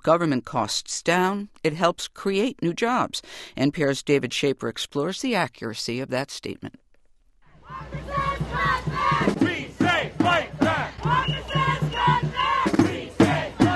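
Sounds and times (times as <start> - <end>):
speech: 0.0 - 6.8
protest crowd shouting at Wisconsin State Capitol: 7.6 - 13.7.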